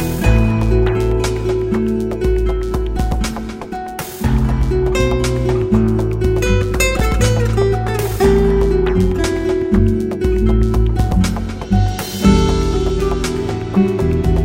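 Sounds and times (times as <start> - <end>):
chillstep music with acoustic guitars: 0.0 - 14.4.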